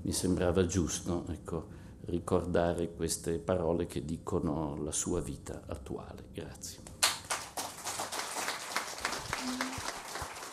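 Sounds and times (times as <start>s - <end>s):
speech: 0.1s - 6.9s
audience applause: 7.3s - 10.5s.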